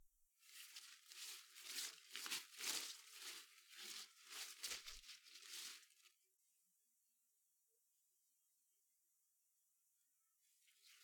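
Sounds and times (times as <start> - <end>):
rustling leaves: 0.5 - 6.1.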